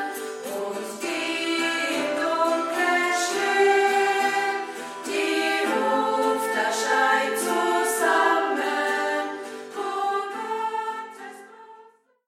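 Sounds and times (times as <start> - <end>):
baptism church song in dialect: 0.0 - 12.1.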